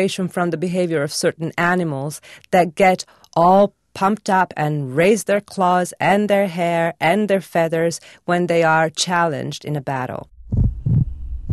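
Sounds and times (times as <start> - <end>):
speech: 0.0 - 10.3
low hum: 10.3 - 11.5
protesters' heartbeats amplified by small chest loudspeakers: 10.4 - 11.5.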